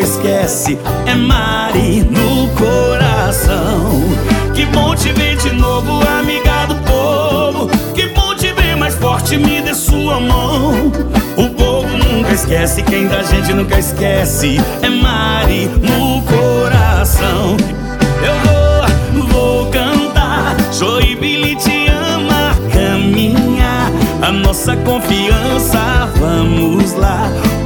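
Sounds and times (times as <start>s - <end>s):
political campaign jingle for a councilwoman candidate: 0.2s - 27.6s.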